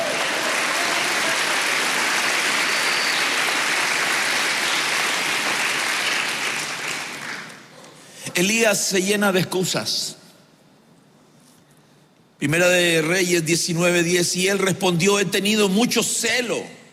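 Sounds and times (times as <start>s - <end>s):
crowd applauding: 0.0s - 7.7s
speech: 8.4s - 10.2s, 12.4s - 16.8s.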